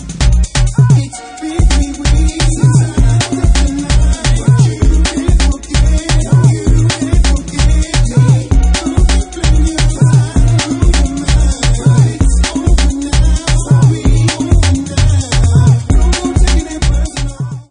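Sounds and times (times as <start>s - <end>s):
UK funky music: 0.0s - 17.6s.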